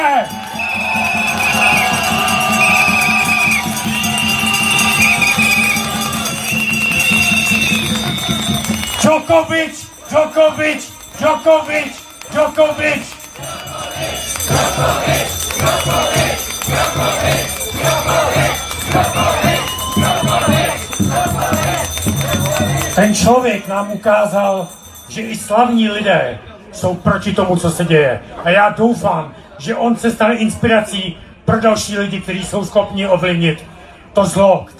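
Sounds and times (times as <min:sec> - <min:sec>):
crowd applause and cheering: 0:00.0 - 0:23.8
speech: 0:09.3 - 0:13.1, 0:14.2 - 0:22.2, 0:23.0 - 0:34.7.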